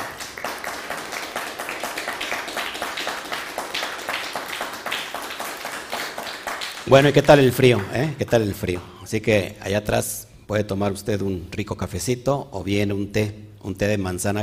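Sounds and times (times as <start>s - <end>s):
audience applause: 0.0s - 8.4s
speech: 6.9s - 14.4s.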